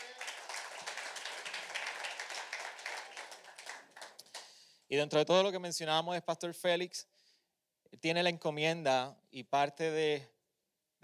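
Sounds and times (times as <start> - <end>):
audience clapping: 0.0 - 4.7
speech: 4.9 - 7.1, 7.9 - 10.4.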